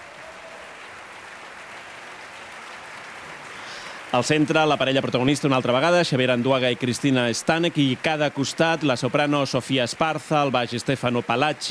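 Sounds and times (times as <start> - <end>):
audience ovation applauding opera soloists: 0.0 - 11.6
speech: 4.1 - 11.6.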